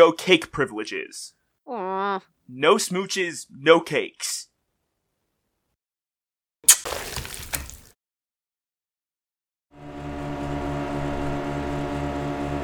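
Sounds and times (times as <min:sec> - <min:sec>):
speech: 0:00.0 - 0:04.5
outboard motor for a fast small vessel droning: 0:09.8 - 0:12.6.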